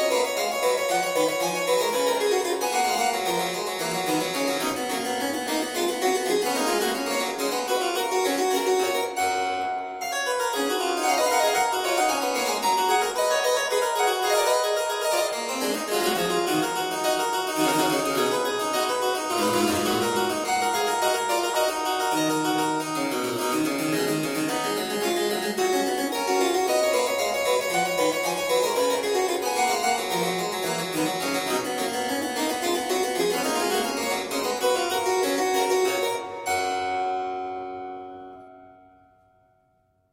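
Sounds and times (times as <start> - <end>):
variation for one or two keyboard manuals: 0.0 - 38.6.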